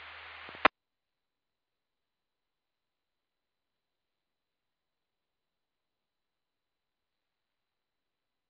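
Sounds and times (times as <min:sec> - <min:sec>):
fire: 0:00.0 - 0:00.7.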